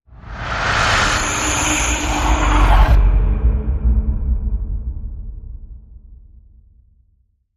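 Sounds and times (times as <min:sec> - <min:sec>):
evil breath boom: 0:00.2 - 0:04.4.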